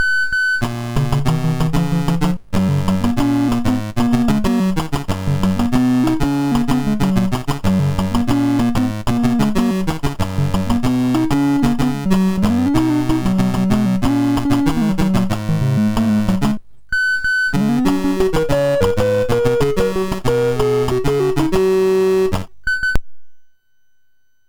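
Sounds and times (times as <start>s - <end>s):
MOS 6581 SID chip game music: 0.6s - 16.6s, 17.3s - 22.5s.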